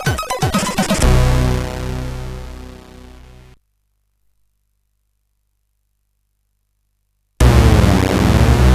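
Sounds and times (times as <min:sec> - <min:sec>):
SID CSG8580R5 chip intro music: 0:00.0 - 0:03.5, 0:07.4 - 0:08.7.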